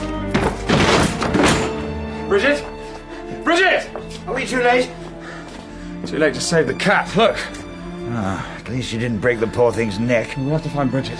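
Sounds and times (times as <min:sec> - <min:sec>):
door being forced open: 0:00.3 - 0:01.9
speech: 0:04.4 - 0:05.0, 0:06.1 - 0:11.1.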